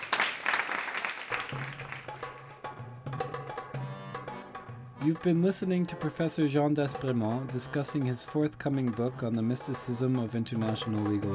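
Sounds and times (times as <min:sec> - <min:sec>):
audience applause: 0:00.0 - 0:02.3
speech: 0:05.0 - 0:11.3.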